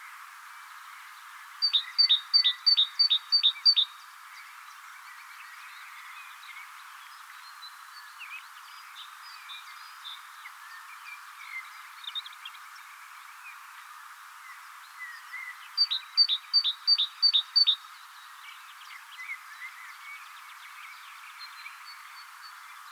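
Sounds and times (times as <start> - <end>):
background bird chirps: 0.0 - 22.9
Great tit singing: 1.6 - 3.9, 15.8 - 18.0.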